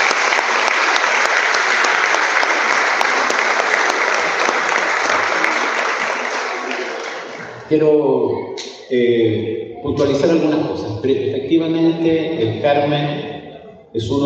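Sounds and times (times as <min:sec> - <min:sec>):
audience applause: 0:00.0 - 0:07.7
speech: 0:07.7 - 0:13.2, 0:13.9 - 0:14.2.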